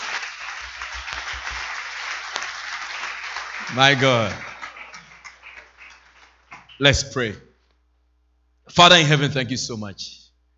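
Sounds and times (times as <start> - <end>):
audience clapping: 0.0 - 7.2
speech: 3.7 - 4.5, 6.8 - 7.5, 8.7 - 10.2.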